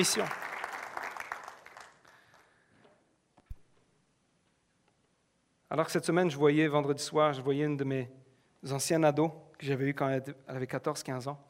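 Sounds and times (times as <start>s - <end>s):
speech: 0.0s - 0.4s, 5.7s - 11.4s
clapping: 0.0s - 2.5s.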